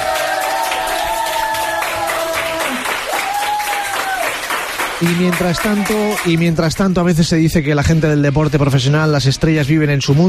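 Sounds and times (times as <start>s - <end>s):
cheering: 0.0s - 6.5s
applause by hospital ICU staff: 0.0s - 6.9s
speech: 5.0s - 10.2s.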